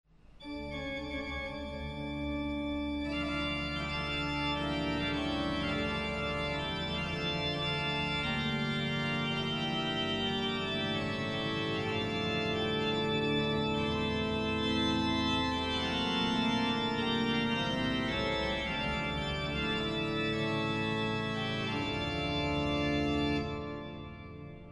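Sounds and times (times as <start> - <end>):
organ improvisation on plein jeu: 0.4 - 24.6.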